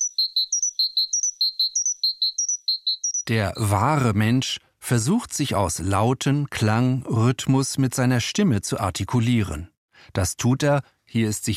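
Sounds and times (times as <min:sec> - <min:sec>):
bird singing: 0:00.0 - 0:03.7
speech: 0:03.3 - 0:11.5.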